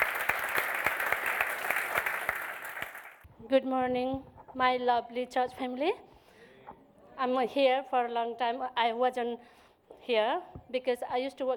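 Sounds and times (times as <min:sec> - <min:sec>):
audience applause: 0:00.0 - 0:03.3
speech: 0:03.5 - 0:06.1, 0:07.2 - 0:11.5.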